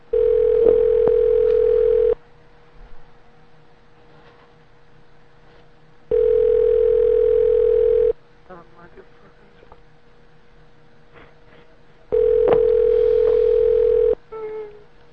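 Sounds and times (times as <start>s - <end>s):
phone ringing unanswered down the line: 0.1s - 2.2s, 6.1s - 8.2s, 12.1s - 14.2s.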